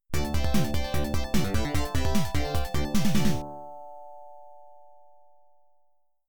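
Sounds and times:
pinball machine extra ball and big points sounds: 0.2s - 3.4s.

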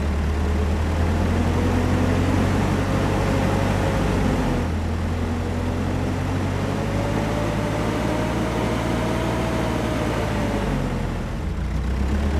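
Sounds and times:
forklift driving: 0.0s - 12.3s.

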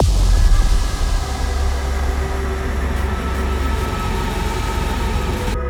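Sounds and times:
defeat music: 0.0s - 5.6s.

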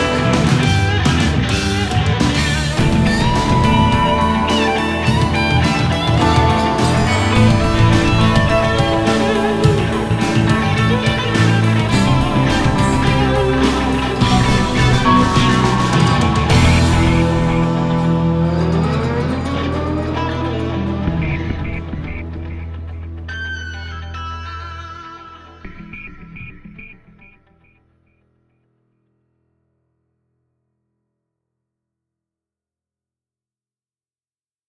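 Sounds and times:
rhythmic tension mission music: 0.0s - 23.3s.

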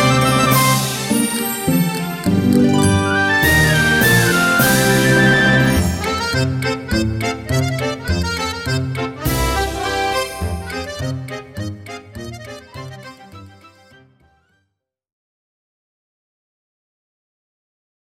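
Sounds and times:
old sweet melody: 0.0s - 14.4s.

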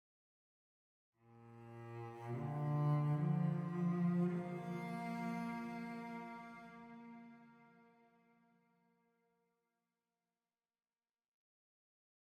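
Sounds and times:
cellos playing: 1.3s - 7.8s.

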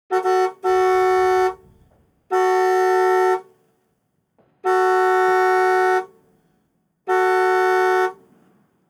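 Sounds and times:
car horn: 0.1s - 3.5s, 4.6s - 6.2s, 7.1s - 8.3s.

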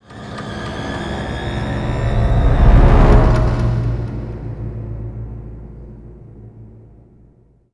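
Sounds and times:
reveal sound effect: 0.1s - 5.1s.

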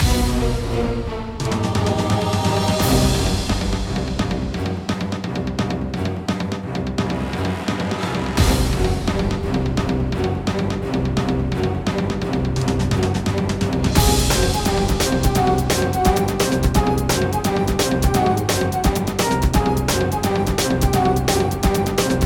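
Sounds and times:
music: 0.0s - 22.2s.

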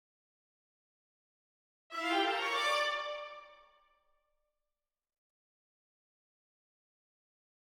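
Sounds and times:
string quartet intro: 1.9s - 3.6s.

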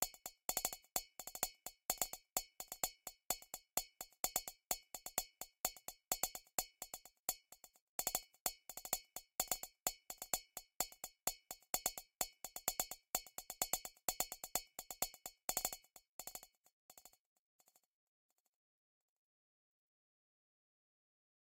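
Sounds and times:
percussion: 0.0s - 17.2s.

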